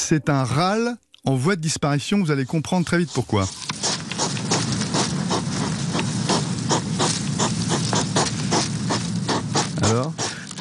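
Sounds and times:
speech: 0.1s - 3.9s, 9.9s - 10.2s
noisy background: 2.4s - 10.5s
hedgehogs mating huffing: 3.0s - 10.5s.

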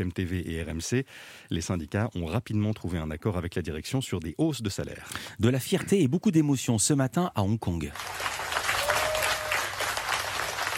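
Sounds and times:
speech: 0.0s - 8.4s
applause from dozens of journalists: 7.9s - 10.7s.

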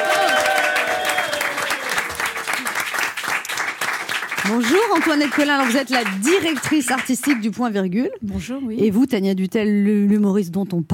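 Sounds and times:
studio audience applause: 0.0s - 7.5s
speech: 4.5s - 10.9s.

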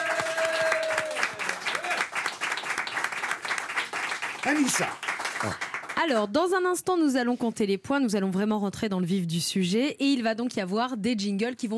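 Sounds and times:
audience applause: 0.0s - 6.2s
speech: 4.4s - 11.7s.

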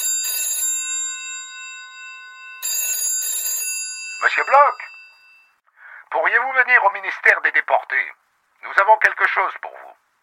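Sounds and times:
telephone ringing: 0.0s - 5.6s
speech: 4.2s - 4.9s, 6.1s - 9.7s.

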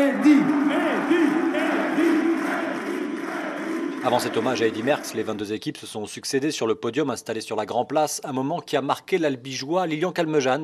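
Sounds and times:
crowd ovation for Eddy Merckx on the Grand Place in Brussels: 0.0s - 5.5s
speech: 4.1s - 10.6s.

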